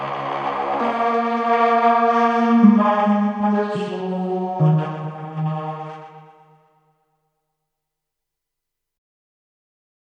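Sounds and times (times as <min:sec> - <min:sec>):
vocoder voice: 0:00.1 - 0:06.3.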